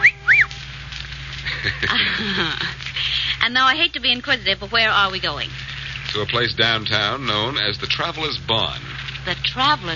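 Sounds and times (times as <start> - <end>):
short high human whistles: 0.0 - 0.6
rough noisy burst: 0.0 - 9.9
laughter: 1.4 - 3.3
speech: 1.6 - 9.9.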